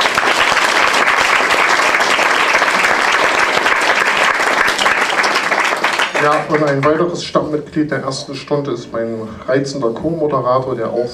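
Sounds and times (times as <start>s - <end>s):
audience applause: 0.0s - 7.2s
speech: 6.2s - 11.1s.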